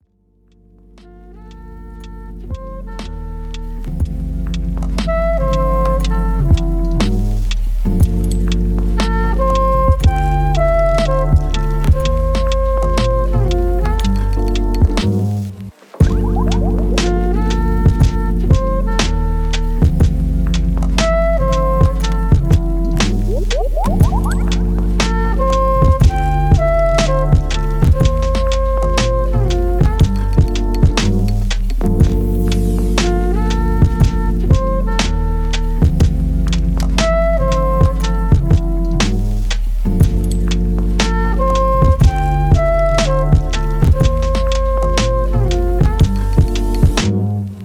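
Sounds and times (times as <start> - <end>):
jazz music: 0.8 - 47.6.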